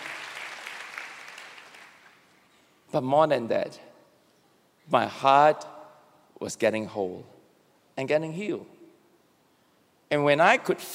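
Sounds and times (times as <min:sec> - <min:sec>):
audience applause in a church service: 0:00.0 - 0:02.2
speech: 0:02.9 - 0:03.9, 0:04.9 - 0:05.7, 0:06.4 - 0:07.3, 0:08.0 - 0:08.8, 0:10.1 - 0:10.9.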